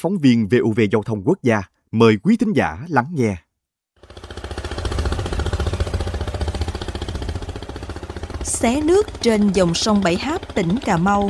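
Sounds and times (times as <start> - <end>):
speech: 0.0 - 4.3, 8.6 - 11.2
small boat's petrol engine running: 4.0 - 11.2.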